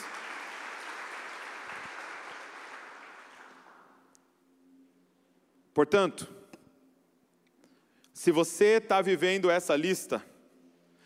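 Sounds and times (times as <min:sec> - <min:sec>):
audience applause: 0:00.0 - 0:04.0
speech: 0:05.8 - 0:06.4, 0:08.2 - 0:10.3.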